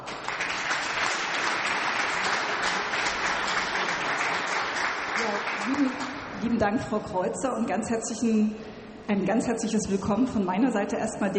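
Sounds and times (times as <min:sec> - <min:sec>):
audience applause: 0:00.0 - 0:06.4
speech: 0:05.7 - 0:11.3.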